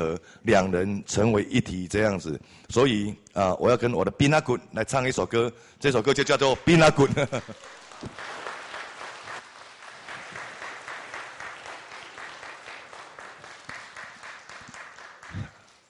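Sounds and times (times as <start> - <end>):
speech: 0.0 - 8.4
audience applause: 7.0 - 15.8.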